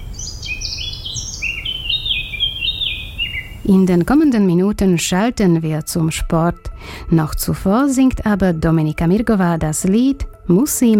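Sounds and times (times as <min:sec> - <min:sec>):
birds singing: 0:00.0 - 0:04.1
speech: 0:03.7 - 0:10.9.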